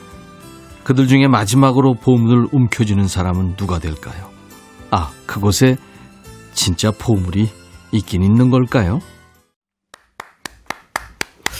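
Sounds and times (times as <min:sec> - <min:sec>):
speech: 0:00.8 - 0:04.3, 0:04.9 - 0:05.9, 0:06.6 - 0:09.1
hands clapping: 0:09.9 - 0:11.5.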